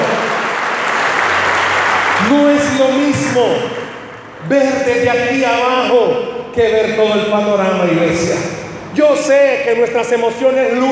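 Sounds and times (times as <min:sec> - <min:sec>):
applause: 0:00.0 - 0:04.4
speech: 0:02.3 - 0:03.8, 0:04.4 - 0:10.9.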